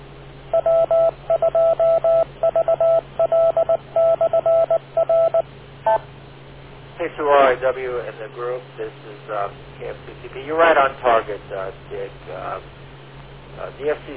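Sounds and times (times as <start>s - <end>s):
steady low hum: 0.0s - 14.1s
radio net electronic touch-tone beeps: 0.6s - 6.0s
speech: 7.6s - 12.8s, 13.6s - 14.1s.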